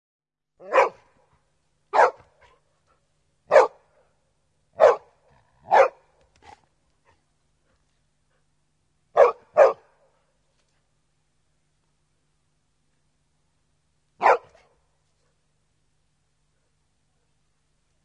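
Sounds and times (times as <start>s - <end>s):
big dog barking: 0.6s - 1.2s, 1.9s - 2.6s, 3.5s - 3.9s, 4.8s - 6.1s, 9.1s - 10.0s, 14.2s - 14.7s.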